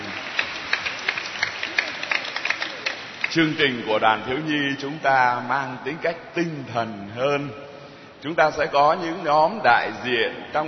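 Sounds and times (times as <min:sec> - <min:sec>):
applause: 0:00.0 - 0:03.8
speech: 0:03.3 - 0:10.6.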